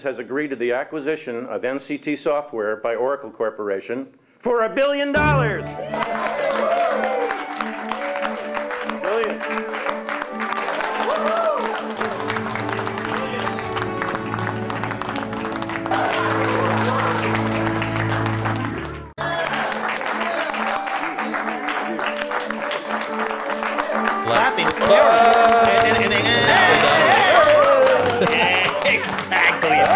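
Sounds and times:
speech: 0.0 - 7.2
audience clapping: 5.8 - 29.9
laughter: 24.4 - 29.9.

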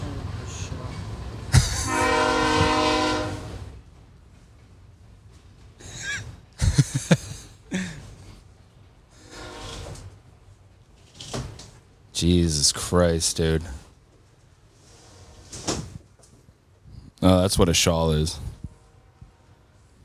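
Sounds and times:
train rumbling: 0.0 - 20.0
laughter: 1.5 - 2.1, 5.8 - 8.1
passing train horn blasting: 1.8 - 3.7, 9.2 - 10.0, 18.7 - 20.0
speech: 12.2 - 13.8, 17.2 - 18.5.

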